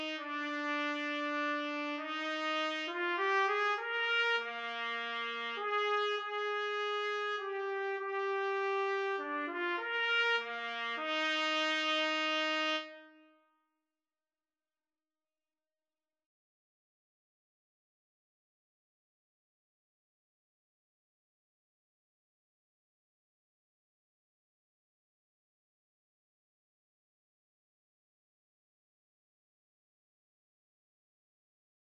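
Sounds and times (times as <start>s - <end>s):
trumpet trio playing karaoke backing: 0.0s - 13.2s.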